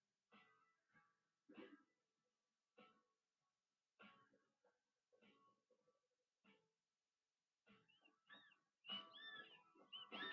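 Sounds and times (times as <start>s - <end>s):
faint scattered dolphin chirps: 7.9s - 10.3s.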